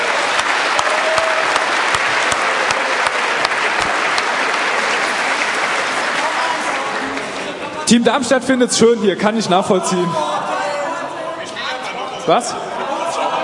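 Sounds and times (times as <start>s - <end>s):
audience applause for Team Darmstadt at a quiz event: 0.0s - 7.6s
speech: 7.9s - 10.4s, 12.2s - 12.7s
laughter: 11.7s - 13.4s.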